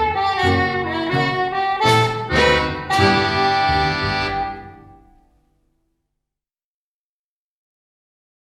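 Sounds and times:
instrumental ensemble playing slow foxtrot: 0.0 - 5.5.

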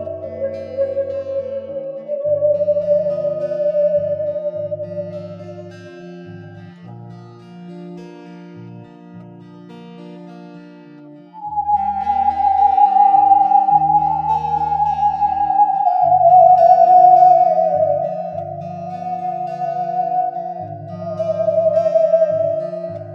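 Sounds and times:
theremin: 0.0 - 6.6, 11.4 - 23.1.

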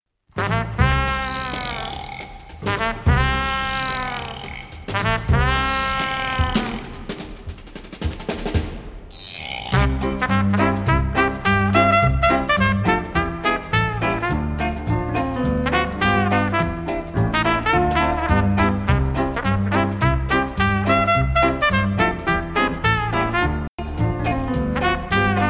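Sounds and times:
instrumental ensemble: 0.4 - 25.4.

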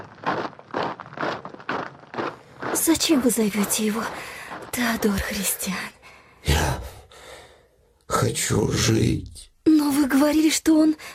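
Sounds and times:
honour guard marching in step with heavy footfalls: 0.0 - 5.8
speech: 2.8 - 6.8, 8.2 - 11.1.

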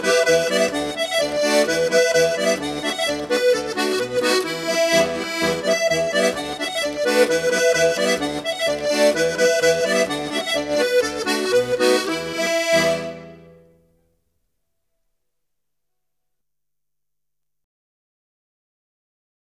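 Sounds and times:
Irish polka: 0.0 - 13.8.

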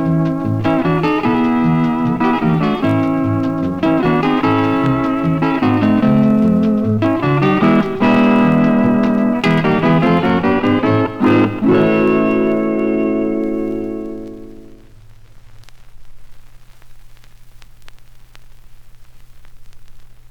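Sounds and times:
polka music: 0.0 - 14.8.

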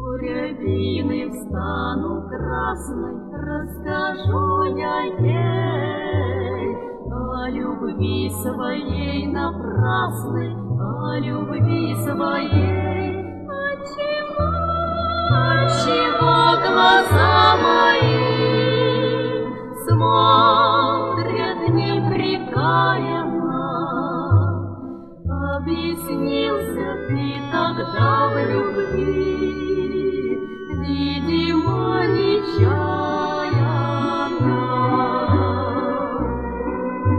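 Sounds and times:
vocal trio singing: 0.2 - 30.4, 31.2 - 37.0.

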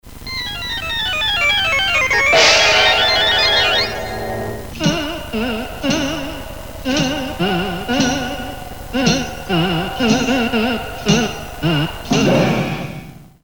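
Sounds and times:
organ: 0.1 - 13.1.

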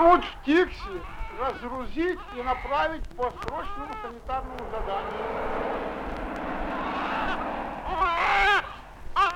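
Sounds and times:
speech: 0.0 - 6.0
low rumbling drone: 4.1 - 9.2.

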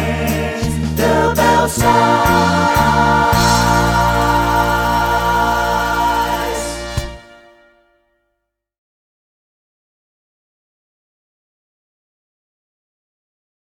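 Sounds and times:
waltz music: 0.0 - 7.9.

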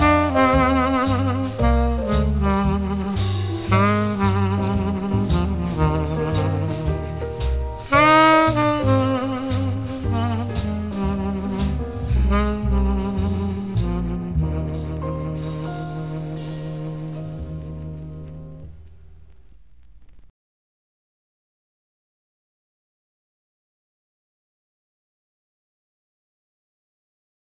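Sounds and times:
saxophone: 0.0 - 19.1.

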